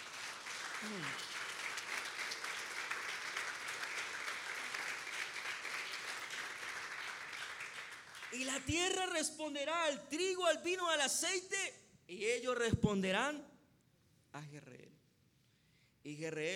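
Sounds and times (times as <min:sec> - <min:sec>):
audience applauding: 0:00.0 - 0:08.7
speech: 0:00.8 - 0:01.3, 0:08.3 - 0:13.5, 0:14.3 - 0:15.0, 0:16.0 - 0:16.5.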